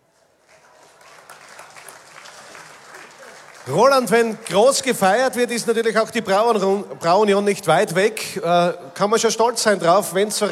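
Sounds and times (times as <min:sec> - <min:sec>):
crowd applauding: 0:00.4 - 0:05.4
speech: 0:03.6 - 0:10.5.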